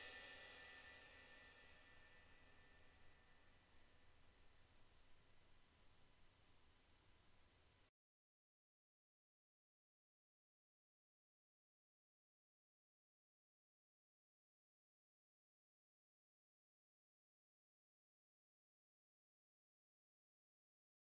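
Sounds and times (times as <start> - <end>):
medium thin 16-inch crash cymbal: 0.0 - 7.7.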